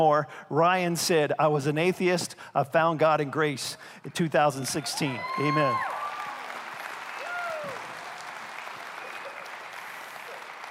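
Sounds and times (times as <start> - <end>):
speech: 0.0 - 6.0
audience applause: 5.1 - 10.6.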